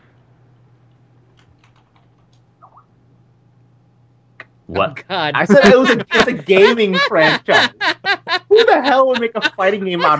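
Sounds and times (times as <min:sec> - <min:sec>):
typing a game chat message on a computer keyboard: 0:01.4 - 0:02.4
speech: 0:04.7 - 0:08.0, 0:08.6 - 0:10.1
laughter: 0:05.4 - 0:10.1.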